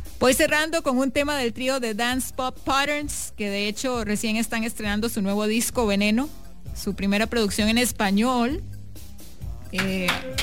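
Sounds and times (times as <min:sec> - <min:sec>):
speech: 0:00.2 - 0:08.7, 0:09.7 - 0:10.4
hand claps: 0:09.7 - 0:10.4.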